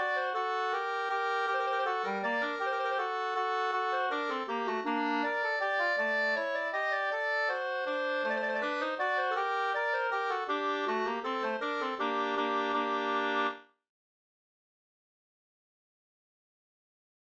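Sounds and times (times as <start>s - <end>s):
waltz in G minor: 0.0s - 13.5s.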